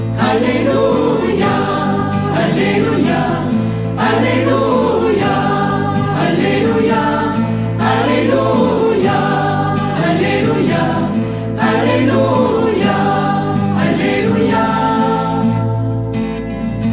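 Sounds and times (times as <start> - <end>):
choir singing an alleluia at mass: 0.1 - 16.7.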